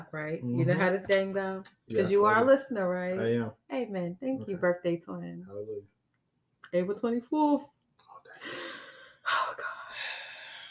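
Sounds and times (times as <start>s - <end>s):
speech: 0.0s - 5.9s, 6.7s - 8.6s
deep breath: 8.4s - 10.7s.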